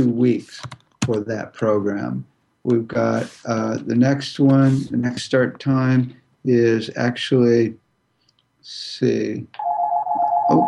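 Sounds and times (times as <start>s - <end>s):
speech: 0.0s - 7.8s, 8.6s - 9.7s, 10.5s - 10.6s
phone electronic ringtone: 9.6s - 10.6s.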